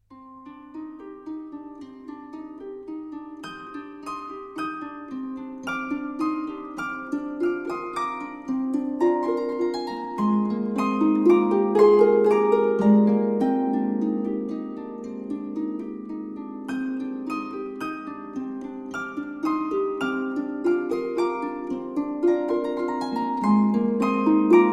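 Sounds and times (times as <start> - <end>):
oriental harp melody: 0.0 - 24.7.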